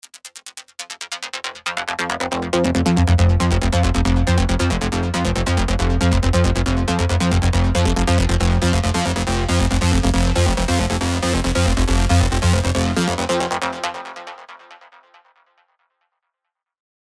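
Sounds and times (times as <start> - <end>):
bassline: 1.8 - 14.2.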